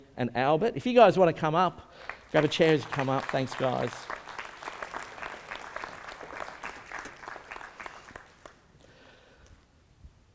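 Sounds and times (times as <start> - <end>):
speech: 0.2 - 4.2
audience applause: 2.0 - 8.7.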